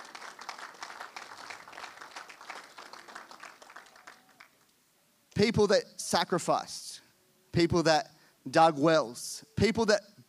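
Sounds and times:
audience clapping: 0:00.0 - 0:04.7
speech: 0:05.4 - 0:07.0, 0:07.6 - 0:10.1.

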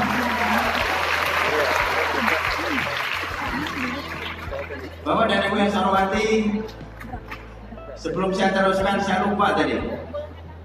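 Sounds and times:
audience applause: 0:00.0 - 0:05.0
speech: 0:05.5 - 0:06.8, 0:08.0 - 0:10.1.

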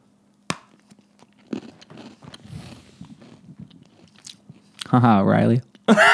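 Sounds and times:
crunchy bite into a gingerbread house and chewing: 0:00.9 - 0:04.9
speech: 0:04.9 - 0:06.1.

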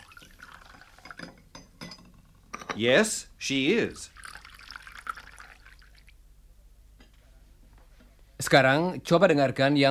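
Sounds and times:
water pouring while making tea: 0:00.0 - 0:01.3, 0:04.0 - 0:06.1
crockery clinking: 0:00.7 - 0:02.9
speech: 0:02.8 - 0:04.2, 0:08.5 - 0:09.8.

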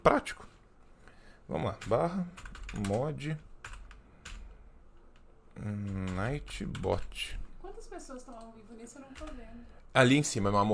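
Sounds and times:
speech: 0:00.0 - 0:00.5, 0:01.5 - 0:03.5, 0:05.6 - 0:10.7
computer keyboard keys clattering typing a chat command: 0:01.7 - 0:07.4, 0:08.2 - 0:09.5.

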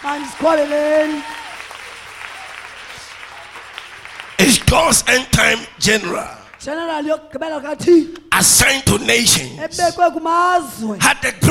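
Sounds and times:
speech: 0:00.0 - 0:01.4, 0:04.4 - 0:11.4
audience clapping: 0:00.0 - 0:07.4.

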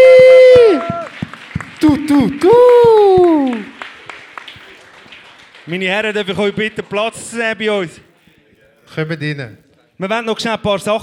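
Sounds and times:
audience applause: 0:00.0 - 0:06.2
speech: 0:01.9 - 0:03.7, 0:05.7 - 0:08.1, 0:08.9 - 0:11.0.

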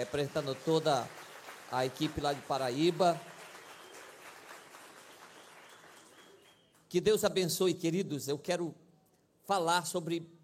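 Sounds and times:
speech: 0:00.0 - 0:03.3, 0:06.9 - 0:08.8, 0:09.5 - 0:10.4
audience applauding: 0:00.0 - 0:06.8.

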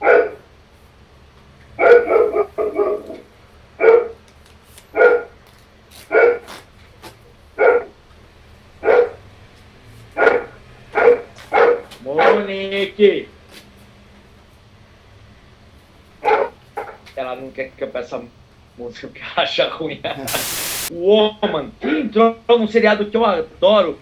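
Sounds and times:
dog barking: 0:00.0 - 0:00.4, 0:01.8 - 0:03.2, 0:03.8 - 0:04.2, 0:05.0 - 0:05.3, 0:06.1 - 0:06.5, 0:07.6 - 0:08.0, 0:08.8 - 0:09.2, 0:10.2 - 0:12.5, 0:16.2 - 0:17.0
speech: 0:12.8 - 0:13.3, 0:17.5 - 0:24.0.

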